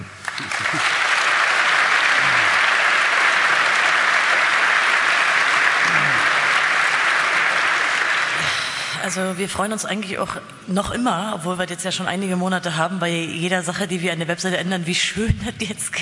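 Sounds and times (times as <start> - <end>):
audience applause: 0.0 - 9.0
speech: 9.1 - 16.0.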